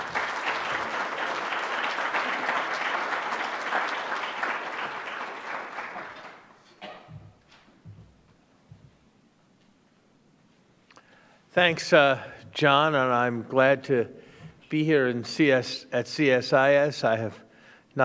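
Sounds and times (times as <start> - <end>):
audience applause: 0.0 - 6.7
speech: 11.6 - 17.4.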